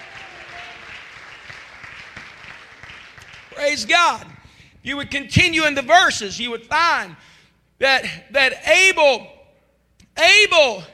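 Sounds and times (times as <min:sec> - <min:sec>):
audience clapping hands: 0:00.0 - 0:03.8
speech: 0:03.6 - 0:09.3, 0:10.2 - 0:10.9.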